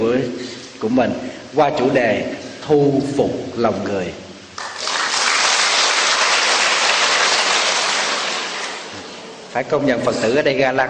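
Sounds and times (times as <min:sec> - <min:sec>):
speech: 0:00.0 - 0:04.2, 0:09.6 - 0:10.8
audience applause at a Buddhist dharma talk: 0:04.6 - 0:09.2.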